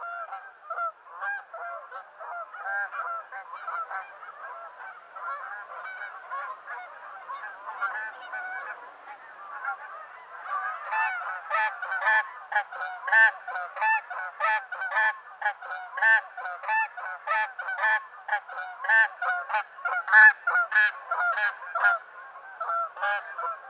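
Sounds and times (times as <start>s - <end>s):
Canada Goose from Western North America calling: 0.0s - 23.6s.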